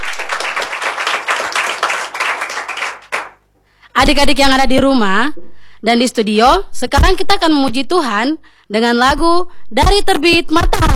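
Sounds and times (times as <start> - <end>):
group clapping hands: 0.0 - 3.4
speech: 4.0 - 10.9.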